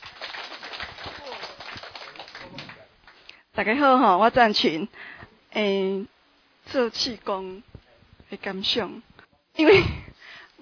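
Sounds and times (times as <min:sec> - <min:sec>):
small audience clapping: 0:00.0 - 0:03.4
speech: 0:03.6 - 0:07.7, 0:08.3 - 0:10.0.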